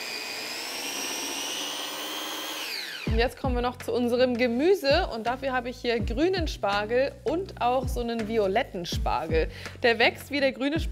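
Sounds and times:
blender pureeing blanched spinach into a paste: 0.0s - 3.2s
speech: 3.1s - 10.9s.

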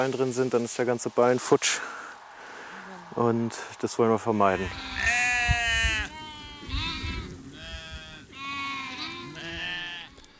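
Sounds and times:
speech: 0.0s - 2.0s, 3.2s - 5.1s
sheep bleating: 4.5s - 10.3s.

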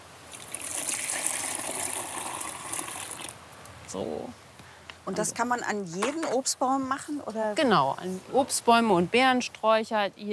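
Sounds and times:
liquid manure pouring into water: 0.3s - 3.3s
speech: 3.9s - 4.4s, 5.0s - 10.3s.

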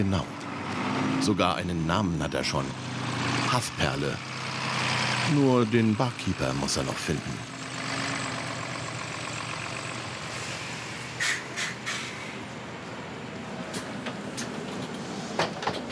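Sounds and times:
speech: 0.0s - 0.4s, 1.2s - 2.9s, 3.5s - 4.3s, 5.3s - 7.5s
bus engine running: 0.0s - 15.9s
road noise: 0.0s - 15.9s
hissing bursts: 10.3s - 12.5s.

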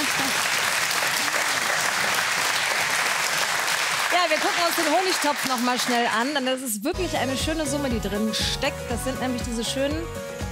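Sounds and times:
audience applause: 0.0s - 6.5s
speech: 4.2s - 10.4s.

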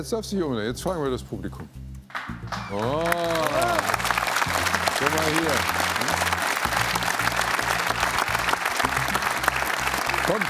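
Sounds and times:
speech: 0.0s - 4.1s, 5.0s - 5.9s, 10.3s - 10.4s
encouraging applause from audience: 2.7s - 10.4s.

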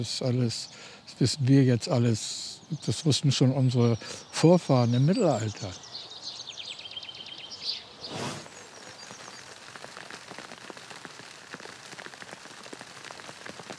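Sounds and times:
speech: 0.0s - 5.8s
hail falling: 8.4s - 13.7s.

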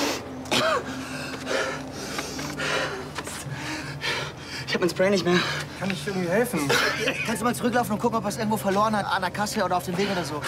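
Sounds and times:
raspy wheezy breathing: 0.0s - 6.4s
harsh coughing during an asthma attack: 0.5s - 0.9s, 6.6s - 7.5s
speech: 4.7s - 10.4s
laughter: 6.2s - 8.0s.

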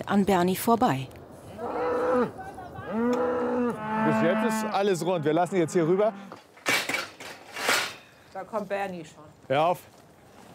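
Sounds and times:
speech: 0.1s - 1.2s, 4.1s - 6.4s, 8.4s - 10.0s
naturally hornless cattle mooing during a cattle drive: 1.6s - 6.4s.

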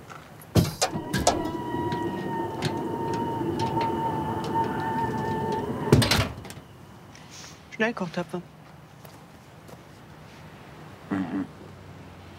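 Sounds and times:
vehicle cargo bed clunks and clicks being opened: 0.6s - 6.7s
steady whining hum of vehicle cargo bed opening: 0.6s - 7.1s
speech: 7.8s - 8.6s.

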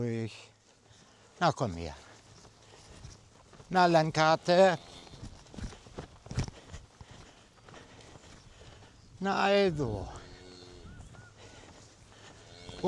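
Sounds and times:
speech: 0.0s - 0.6s, 1.4s - 2.1s, 3.7s - 4.9s, 9.2s - 10.2s
cow and calf hoof thuds and shuffling: 0.0s - 12.8s
cow bellowing: 4.5s - 5.3s, 9.3s - 12.8s.

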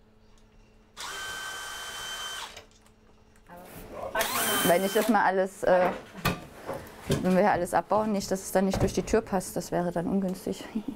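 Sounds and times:
power drill unscrewing fittings: 1.0s - 2.7s, 4.2s - 5.1s
speech: 4.7s - 6.2s, 7.1s - 10.9s.

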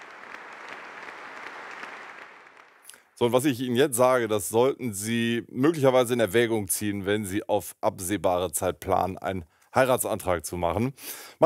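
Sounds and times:
audience applause: 0.0s - 3.2s
speech: 3.2s - 11.4s.

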